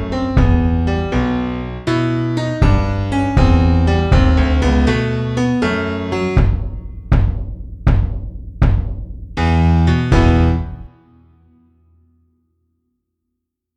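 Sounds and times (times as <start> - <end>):
bass drum: 0.0 - 1.3, 2.6 - 5.0, 6.4 - 10.9
piano: 0.0 - 12.6.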